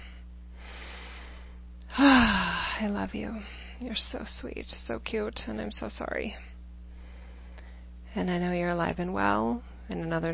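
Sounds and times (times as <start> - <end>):
deep breath: 0.0 - 2.8, 6.9 - 7.9
steady low hum: 0.0 - 10.3
speech: 2.0 - 6.5, 8.2 - 10.3.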